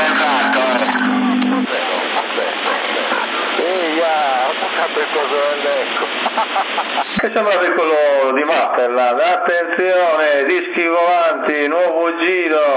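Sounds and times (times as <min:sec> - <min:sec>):
brief buzzing tone: 0:00.0 - 0:02.2
voice over a CB radio transmission with echo effect in Sassari, Italy: 0:00.0 - 0:12.7
laughter: 0:01.7 - 0:08.0
speech: 0:06.4 - 0:12.7.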